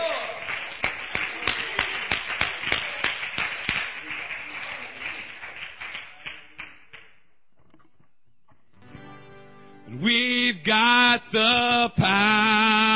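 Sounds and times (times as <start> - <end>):
audience applause: 0.0 - 6.8
sharp steady rhythmic claps: 0.1 - 7.3
speech: 10.6 - 12.3.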